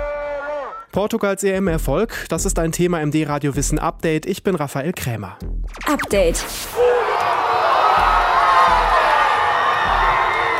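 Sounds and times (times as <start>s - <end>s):
speech: 1.0s - 6.9s
football fans cheering in fan zone in Lisbon: 6.7s - 10.5s.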